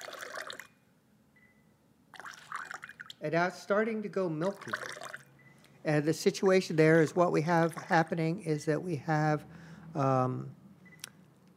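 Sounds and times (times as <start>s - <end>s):
water trickling into a glass: 0.0s - 0.8s, 2.2s - 3.2s, 4.4s - 5.3s
speech: 3.2s - 5.0s, 5.8s - 10.6s.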